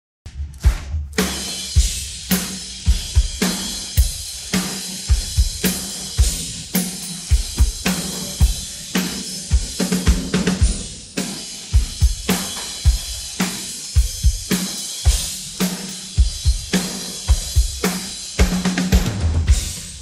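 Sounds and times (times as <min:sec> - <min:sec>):
drum pattern: 0:00.3 - 0:20.0.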